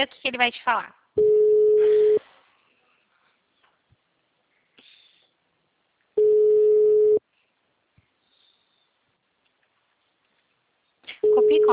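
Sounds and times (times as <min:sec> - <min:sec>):
speech: 0:00.0 - 0:01.9, 0:11.4 - 0:11.7
ringback tone of an unanswered phone call: 0:01.2 - 0:02.2, 0:06.2 - 0:07.2.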